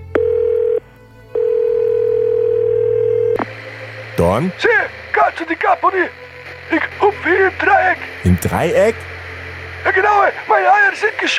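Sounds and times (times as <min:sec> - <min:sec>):
telephone ringback tone: 0:00.0 - 0:03.4
speech: 0:04.3 - 0:09.1, 0:09.8 - 0:11.3.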